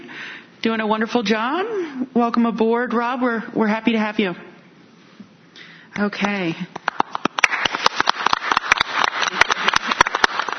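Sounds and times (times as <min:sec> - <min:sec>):
speech: 0:00.6 - 0:04.5, 0:06.0 - 0:06.8
hand clapping for audio test: 0:06.7 - 0:10.5.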